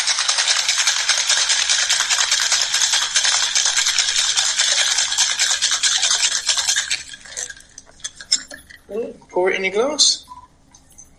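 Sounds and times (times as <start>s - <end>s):
cocktail shaker shaken with ice rattling: 0.0s - 8.8s
speech: 9.4s - 10.2s.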